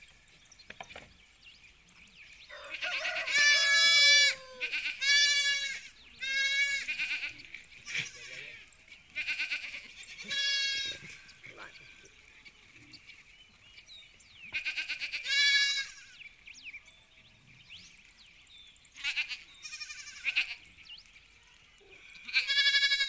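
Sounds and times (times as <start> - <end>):
sheep bleating: 2.6 - 11.3, 14.5 - 16.1, 19.0 - 20.6, 22.1 - 23.0.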